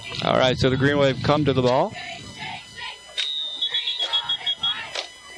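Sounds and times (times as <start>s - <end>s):
speech: 0.3s - 2.0s
referee whistles at a football game: 3.1s - 5.3s.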